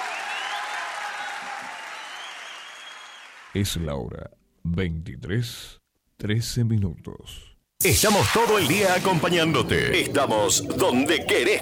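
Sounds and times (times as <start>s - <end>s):
audience applause: 0.0s - 3.6s
speech: 3.6s - 11.6s.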